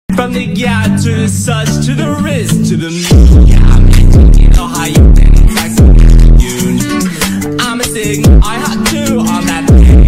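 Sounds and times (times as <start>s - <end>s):
boosted bass: 0.2s - 10.0s.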